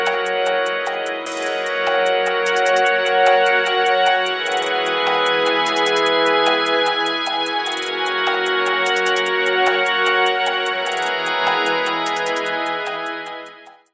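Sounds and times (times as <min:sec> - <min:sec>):
lo-fi music: 0:00.0 - 0:13.9.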